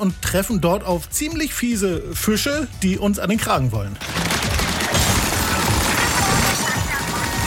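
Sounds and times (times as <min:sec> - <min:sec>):
speech: 0:00.0 - 0:04.2
video game gunfire: 0:04.0 - 0:07.4.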